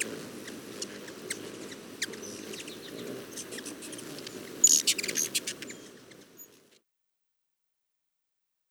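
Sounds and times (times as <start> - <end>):
ruby-throated hummingbird: 0.0 - 6.8.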